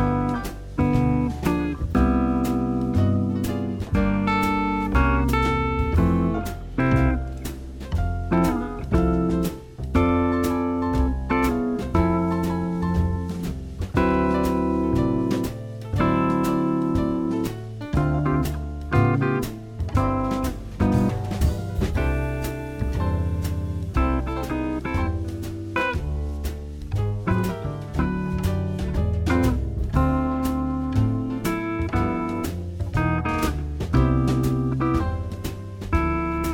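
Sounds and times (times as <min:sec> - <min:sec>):
elaborate comping chords: 0:00.0 - 0:36.5.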